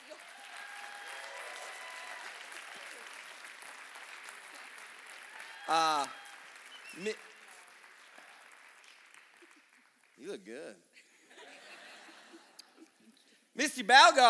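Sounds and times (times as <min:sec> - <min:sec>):
loud cheering shouts: 0:00.0 - 0:03.2, 0:05.1 - 0:07.1
audience applause: 0:00.0 - 0:10.2
speech: 0:05.7 - 0:06.2, 0:07.0 - 0:07.3, 0:10.2 - 0:11.0, 0:13.6 - 0:14.2
laughter: 0:11.0 - 0:13.1.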